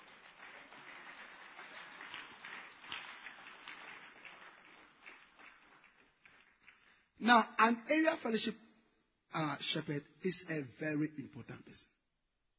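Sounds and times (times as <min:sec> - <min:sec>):
audience clapping hands: 0:00.0 - 0:07.1
speech: 0:07.2 - 0:08.6, 0:09.3 - 0:12.0.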